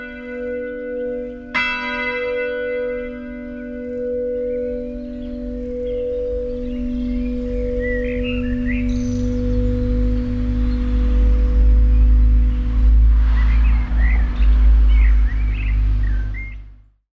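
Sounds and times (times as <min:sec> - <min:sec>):
church bells ringing: 0:00.0 - 0:16.1.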